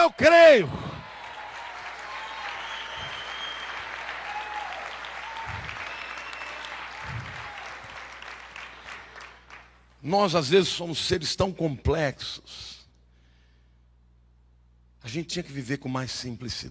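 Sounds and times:
speech: 0.0s - 0.9s, 10.0s - 12.8s, 15.0s - 16.6s
audience applauding: 0.8s - 9.8s.

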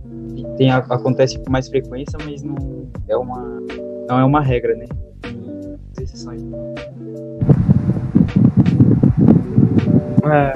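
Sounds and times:
speech: 0.6s - 5.4s, 6.1s - 7.7s, 10.2s - 10.5s
electric fan noise near the microphone: 7.4s - 10.2s.

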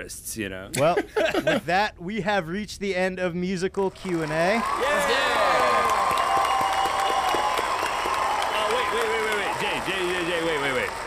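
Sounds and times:
speech: 0.0s - 5.4s
applause: 3.9s - 11.0s.

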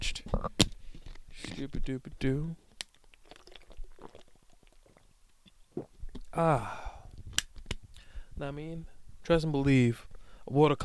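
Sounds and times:
speech: 1.6s - 2.6s, 6.4s - 6.8s, 8.4s - 10.8s
person sipping and swallowing water: 2.8s - 7.4s
brief voiced exhale: 6.4s - 7.2s.

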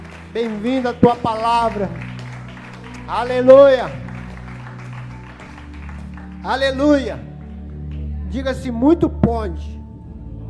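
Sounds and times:
audience applauding: 0.0s - 8.1s
low musical tones: 0.0s - 10.4s
speech: 0.4s - 2.0s, 3.1s - 4.0s, 6.4s - 7.3s, 8.3s - 9.8s.

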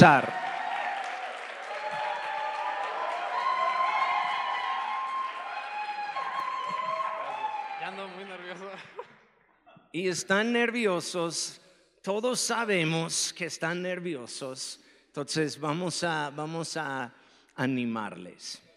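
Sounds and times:
speech: 0.0s - 0.4s, 9.9s - 18.7s
applause and cheering: 0.0s - 9.0s.

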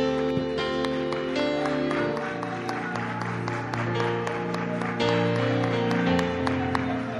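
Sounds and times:
crowd clapping: 0.0s - 7.1s
sustained music with held chords: 0.0s - 7.1s.

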